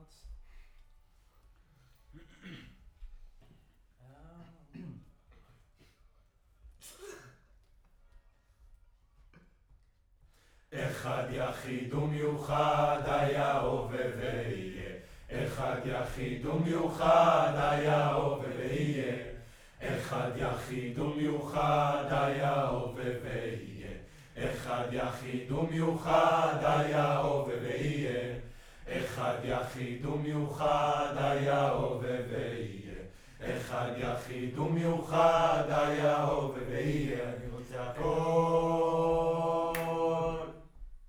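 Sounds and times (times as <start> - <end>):
distant choir: 10.7 - 40.9.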